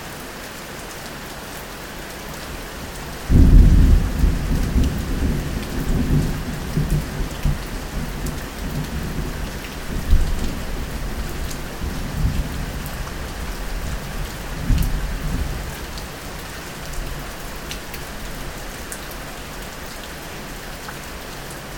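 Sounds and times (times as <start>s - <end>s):
rain: 0.0s - 21.7s.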